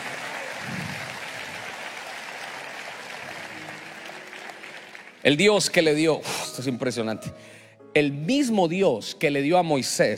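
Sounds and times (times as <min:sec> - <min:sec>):
audience applause: 0:00.0 - 0:05.9
speech: 0:05.2 - 0:10.1.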